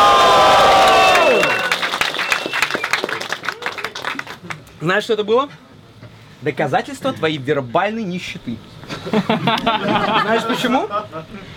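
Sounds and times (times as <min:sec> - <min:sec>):
concert crowd cheering and screaming: 0:00.0 - 0:02.8
scattered clapping and shouts: 0:00.0 - 0:04.6
speech: 0:04.8 - 0:05.6, 0:06.4 - 0:11.5
laughter: 0:08.9 - 0:11.5.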